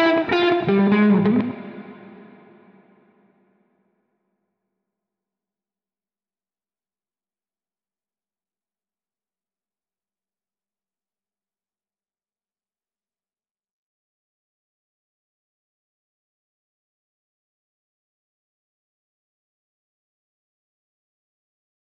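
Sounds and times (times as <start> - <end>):
guitar melody: 0.0 - 2.8.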